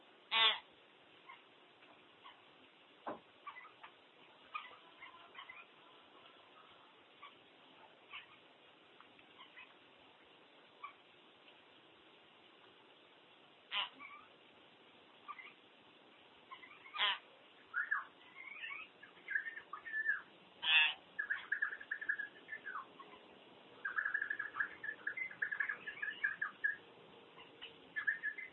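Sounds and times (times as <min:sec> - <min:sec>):
common hill myna squawking: 0:00.3 - 0:01.4, 0:03.4 - 0:03.9, 0:04.5 - 0:05.8, 0:13.7 - 0:14.3, 0:15.2 - 0:15.6, 0:16.5 - 0:26.8, 0:27.4 - 0:28.5.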